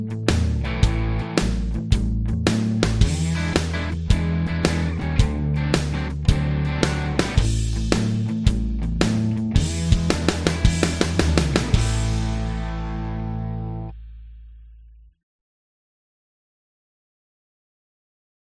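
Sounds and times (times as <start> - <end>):
musical riff track: 0.4 - 13.9.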